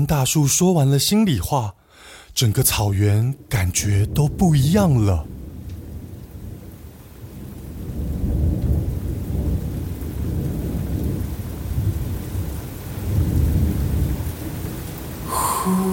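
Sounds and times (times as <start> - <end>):
speech: 0.0 - 1.8, 2.4 - 5.4
heavy rain: 0.0 - 15.9
loud thunder: 4.1 - 15.9.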